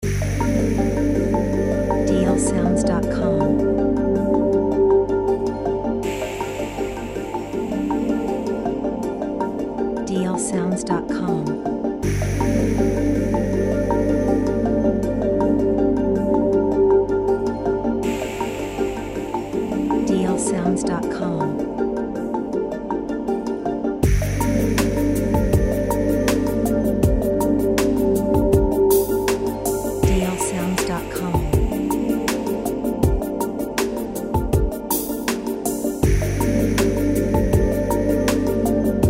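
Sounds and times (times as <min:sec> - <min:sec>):
chill resort music loop: 0:00.0 - 0:39.0.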